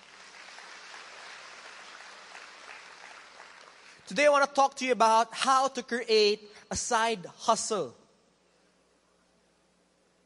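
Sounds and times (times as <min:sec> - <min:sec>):
crowd clapping: 0:00.0 - 0:04.1
speech: 0:04.1 - 0:08.0.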